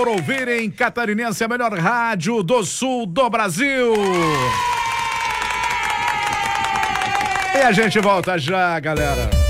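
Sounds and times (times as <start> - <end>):
audience applause: 0.0 - 0.8, 3.9 - 8.6
speech: 0.0 - 4.8, 7.6 - 9.4.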